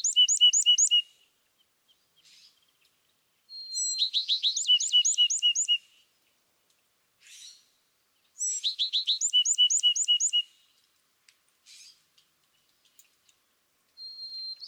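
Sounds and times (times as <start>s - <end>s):
California thrasher song: 3.5s - 5.9s, 8.4s - 10.5s, 14.0s - 14.6s.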